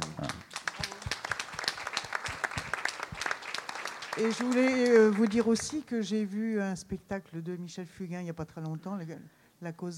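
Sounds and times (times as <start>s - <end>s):
audience applause: 0.2s - 5.8s
speech: 4.2s - 9.9s.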